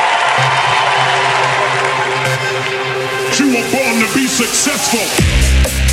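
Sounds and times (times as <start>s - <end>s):
audience clapping: 0.0s - 4.3s
audience cheering: 0.0s - 5.2s
speech: 4.4s - 5.8s.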